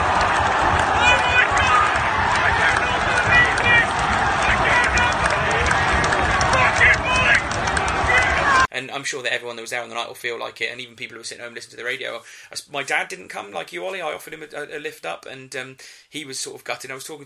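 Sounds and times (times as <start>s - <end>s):
football crowd screaming and roaring at a goal: 0.0s - 8.7s
speech: 9.0s - 17.2s.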